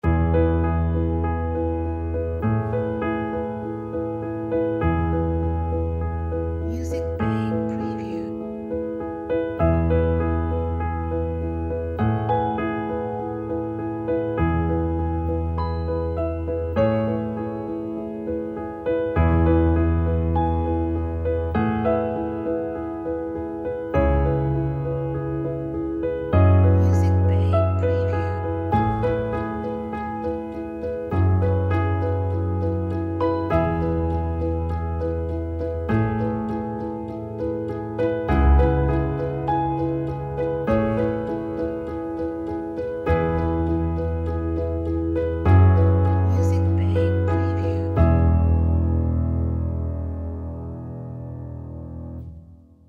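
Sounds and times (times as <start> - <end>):
elegant delicate piano: 0.0 - 52.8.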